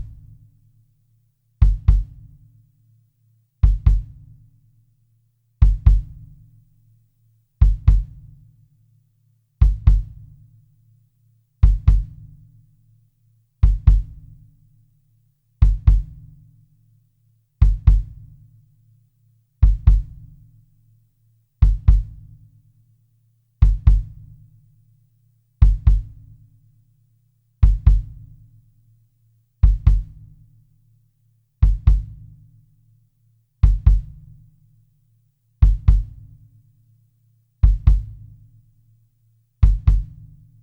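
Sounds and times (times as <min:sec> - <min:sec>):
kick drum: 0:00.0 - 0:00.5, 0:01.6 - 0:02.6, 0:03.6 - 0:04.6, 0:05.6 - 0:06.6, 0:07.6 - 0:08.5, 0:09.6 - 0:10.5, 0:11.6 - 0:12.7, 0:13.6 - 0:14.7, 0:15.6 - 0:16.6, 0:17.6 - 0:18.5, 0:19.6 - 0:20.7, 0:21.6 - 0:22.6, 0:23.6 - 0:24.5, 0:25.6 - 0:26.5, 0:27.6 - 0:28.7, 0:29.6 - 0:30.7, 0:31.6 - 0:32.6, 0:33.6 - 0:34.6, 0:35.6 - 0:36.6, 0:37.6 - 0:38.7, 0:39.6 - 0:40.6.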